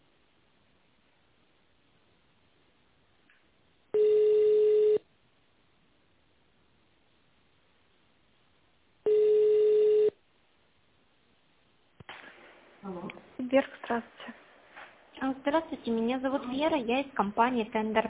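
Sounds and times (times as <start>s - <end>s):
quiet phone line hiss: 3.9s - 5.0s, 9.0s - 10.2s
telephone ringing tones: 3.9s - 5.1s, 9.0s - 10.2s
speech: 13.5s - 14.4s, 15.2s - 18.0s.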